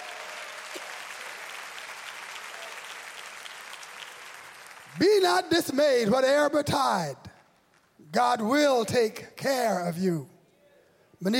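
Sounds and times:
audience clapping: 0.0 - 8.1
speech: 5.0 - 7.3, 8.1 - 10.3, 11.2 - 11.3.

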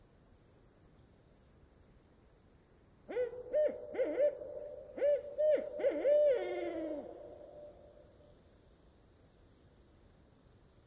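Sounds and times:
barred owl song: 3.1 - 8.1.

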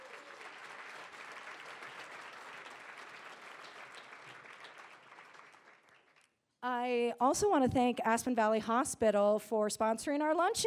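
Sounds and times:
audience applause at a luncheon: 0.0 - 6.3
speech: 6.6 - 10.6.

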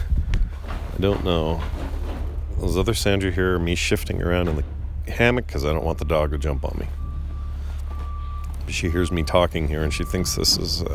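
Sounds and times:
constant low engine rumble: 0.0 - 10.9
speech: 1.0 - 2.0, 2.6 - 7.0, 8.7 - 10.9
vehicle reversing beeps at construction work: 5.5 - 10.9.

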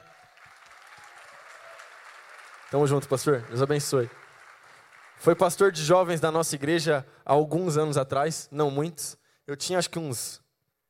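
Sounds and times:
round of applause: 0.0 - 6.2
speech: 2.7 - 4.2, 5.2 - 10.4.

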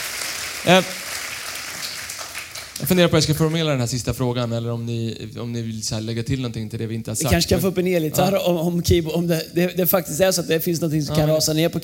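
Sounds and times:
applause from a group: 0.0 - 3.7
speech: 0.6 - 1.0, 2.9 - 11.8.

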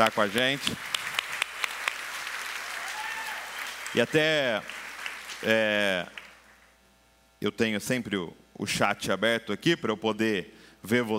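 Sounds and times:
speech: 0.0 - 0.9, 3.9 - 4.8, 5.4 - 6.2, 7.4 - 11.1
audience applause: 0.0 - 6.6.

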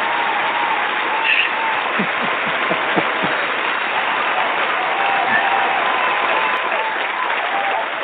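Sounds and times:
laughter: 0.0 - 8.0
played-in audience applause effect: 0.0 - 8.0.

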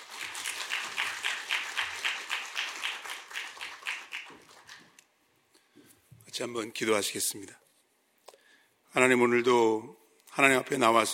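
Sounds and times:
audience applause: 0.0 - 4.9
speech: 6.4 - 7.6, 9.0 - 11.1.

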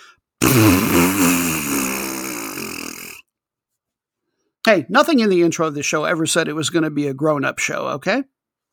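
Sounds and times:
Bronx cheer raspberry blown with the lips: 0.4 - 3.2
speech: 4.7 - 8.4.

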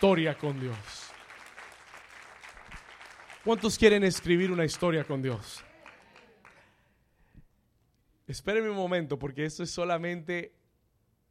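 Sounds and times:
speech: 0.0 - 1.0, 3.4 - 5.7, 8.3 - 10.6
audience applause: 0.0 - 6.7.

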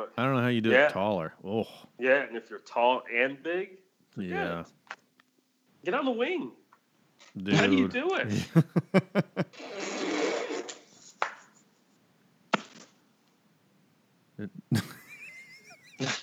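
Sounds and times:
speech: 0.0 - 5.0, 5.8 - 6.6, 7.3 - 10.1, 14.4 - 14.9, 16.0 - 16.2
laughter: 7.4 - 9.5, 14.6 - 16.2
fart sound effect from soundboard: 9.6 - 10.8.

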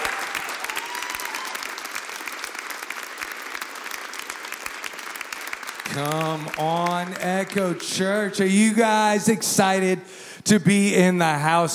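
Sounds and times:
audience applauding: 0.0 - 9.2
speech: 6.0 - 11.7.

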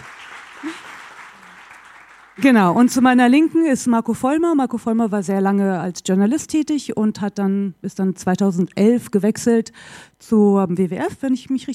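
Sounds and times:
audience applause: 0.0 - 3.0
speech: 2.4 - 11.7.

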